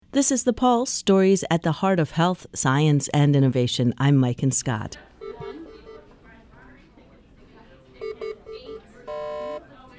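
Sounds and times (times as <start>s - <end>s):
speech: 0.2s - 5.1s
soft murmur of voices: 4.8s - 9.9s
hospital patient monitor beeping: 5.0s - 6.7s, 7.8s - 9.9s.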